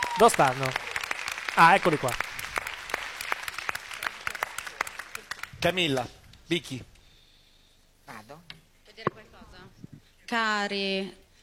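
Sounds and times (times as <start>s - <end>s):
audience clapping in a television talent show studio: 0.0s - 6.1s
speech: 0.2s - 0.9s, 1.6s - 2.2s, 5.6s - 6.9s, 10.3s - 11.2s.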